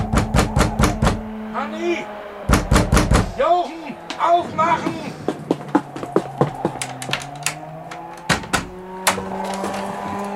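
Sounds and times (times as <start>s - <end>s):
sharp knocks and bangs: 0.0s - 1.3s, 2.4s - 3.5s, 5.2s - 10.3s
droning warning siren: 0.0s - 10.3s.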